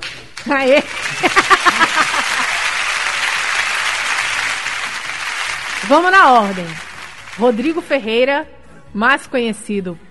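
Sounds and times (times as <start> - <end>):
applause: 0.0 - 8.0
speech: 0.5 - 1.8, 5.9 - 10.0
laughter: 0.8 - 3.4.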